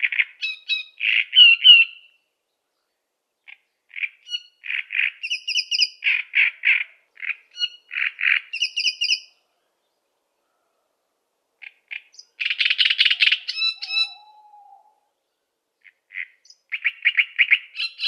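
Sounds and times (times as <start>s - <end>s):
Great reed warbler singing: 0.0s - 2.2s, 3.4s - 9.4s, 11.6s - 14.4s, 15.8s - 18.0s.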